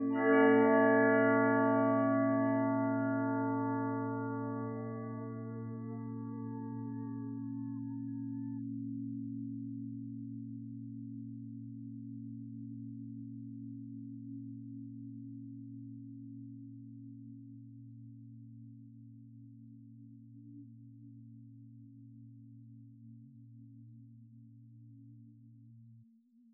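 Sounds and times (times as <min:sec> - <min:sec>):
bells resonating: 0:00.0 - 0:08.1.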